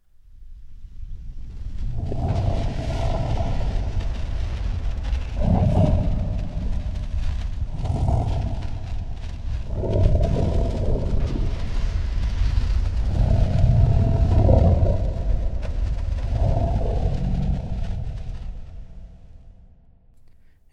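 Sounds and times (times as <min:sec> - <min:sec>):
Balrog monster roar with heavy reverb: 0:01.7 - 0:19.7.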